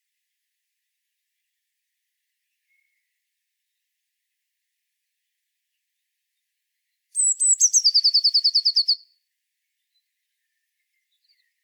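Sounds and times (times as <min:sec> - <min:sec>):
Eurasian blue tit singing: 0:07.2 - 0:09.0.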